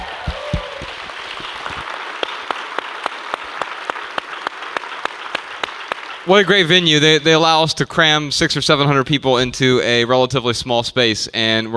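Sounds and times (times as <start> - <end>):
brief cheer: 0.0 - 2.5
crowd clapping: 0.0 - 7.2
speech: 6.3 - 11.7.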